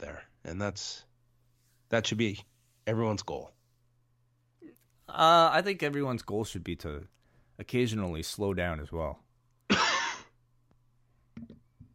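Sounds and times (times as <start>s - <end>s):
speech: 0.5s - 1.1s, 1.9s - 3.6s, 5.1s - 9.2s
harsh cough: 9.7s - 10.4s.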